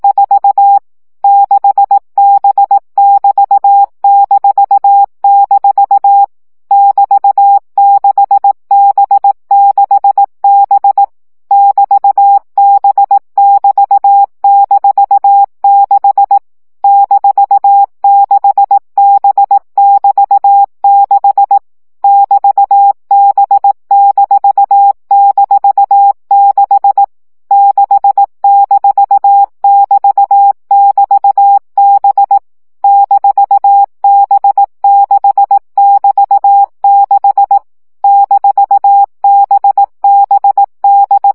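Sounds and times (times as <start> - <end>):
CW Morse code practice tones at 15 baud: 0.0 - 41.3.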